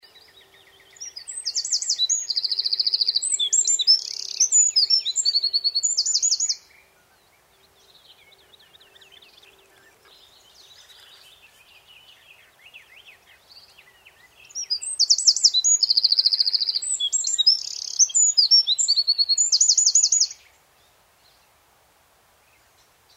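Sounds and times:
Eurasian wren singing: 0.0s - 20.5s.

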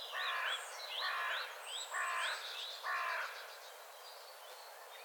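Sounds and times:
carrion crow Corvus corone giving harsh hoarse caws: 0.1s - 3.4s.

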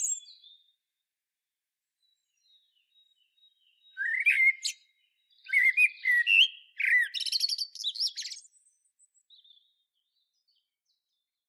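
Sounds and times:
common blackbird song: 0.0s - 0.7s, 2.0s - 9.7s.

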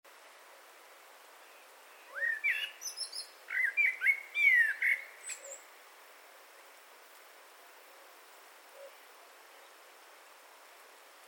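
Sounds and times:
Eurasian blackbird singing: 1.5s - 5.6s.

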